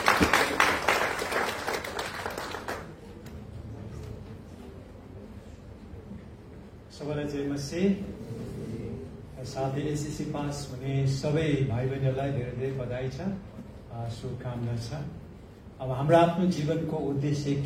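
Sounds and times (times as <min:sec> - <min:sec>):
church congregation applauding a pastor: 0:00.0 - 0:03.3
speech: 0:07.0 - 0:08.3, 0:09.4 - 0:15.2, 0:15.8 - 0:17.6.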